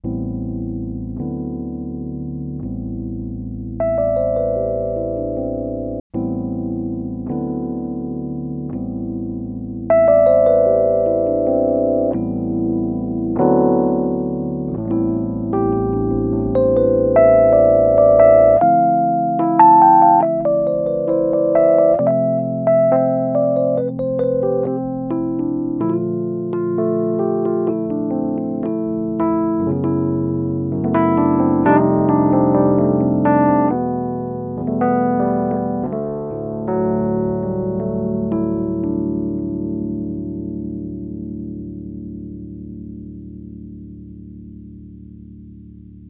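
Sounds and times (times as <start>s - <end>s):
Rhodes electric piano dry and wet: 0.0s - 46.0s.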